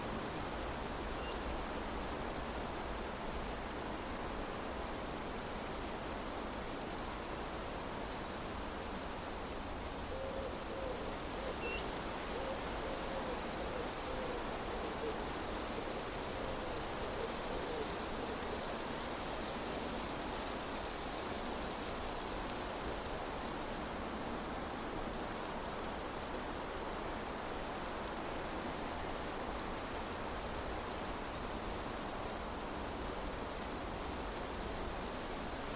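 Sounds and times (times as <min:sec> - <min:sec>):
wind rustling tall grasses across an open field: 0:00.0 - 0:35.7.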